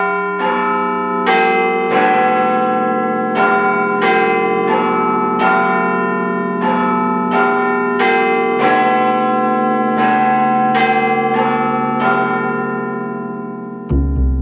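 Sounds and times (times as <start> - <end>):
large clock tower bells in London chiming the hour: 0.0 - 13.9.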